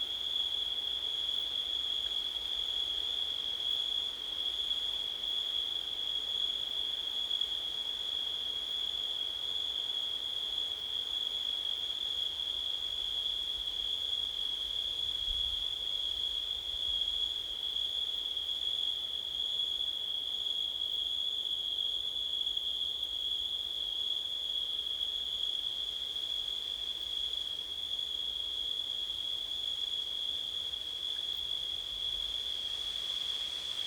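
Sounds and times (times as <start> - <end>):
crickets chirping on a September night: 0.0 - 33.8
wind on a September night: 0.0 - 33.8.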